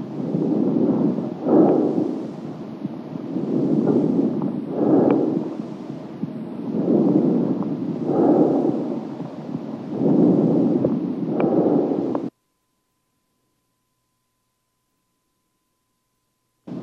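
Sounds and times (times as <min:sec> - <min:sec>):
bronchovesicular breath sounds heard through a stethoscope: 0:00.0 - 0:12.3.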